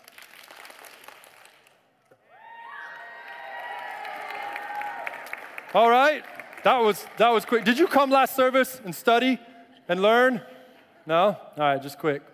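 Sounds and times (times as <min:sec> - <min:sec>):
group of children clapping: 0:00.0 - 0:01.8, 0:02.9 - 0:07.8
speech: 0:05.7 - 0:10.5, 0:11.1 - 0:12.3.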